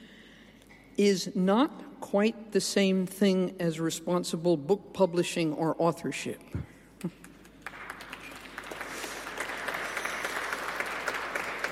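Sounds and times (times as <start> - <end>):
speech: 1.0 - 7.2
audience applause: 7.6 - 11.7.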